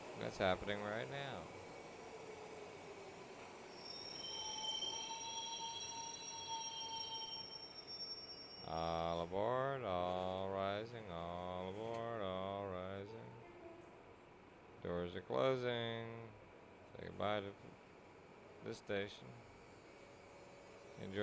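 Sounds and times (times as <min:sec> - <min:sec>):
speech: 0:00.2 - 0:01.6, 0:08.7 - 0:13.2, 0:14.9 - 0:16.3, 0:17.0 - 0:17.8, 0:18.6 - 0:19.5, 0:21.0 - 0:21.1
train wheels squealing at a station: 0:01.7 - 0:09.5, 0:19.6 - 0:21.1.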